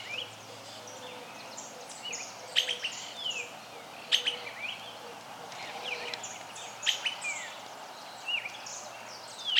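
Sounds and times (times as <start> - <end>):
streaked flycatcher calling: 0.0 - 7.6.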